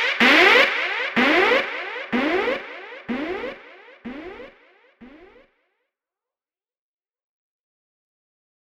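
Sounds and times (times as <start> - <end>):
extratone music: 0.0 - 5.4.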